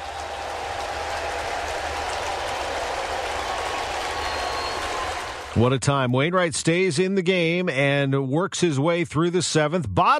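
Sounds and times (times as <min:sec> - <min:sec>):
ballpark stadium crowd applauding and cheering: 0:00.0 - 0:05.7
speech: 0:05.6 - 0:10.1.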